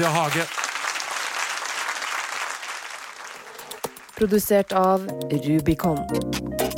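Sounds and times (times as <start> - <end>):
speech: 0.0 - 0.6, 4.2 - 6.6
audience applause for a guest on stage at a live show: 0.0 - 4.2.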